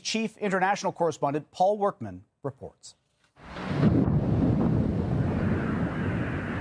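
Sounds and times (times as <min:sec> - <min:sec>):
speech: 0:00.1 - 0:04.0
thunderous explosions from air defense shooting down missiles: 0:03.4 - 0:06.5.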